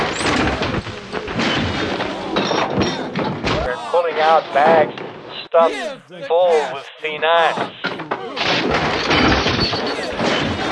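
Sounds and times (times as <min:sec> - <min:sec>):
furniture being smashed: 0:00.0 - 0:03.7, 0:08.0 - 0:10.7
speech: 0:04.3 - 0:08.0.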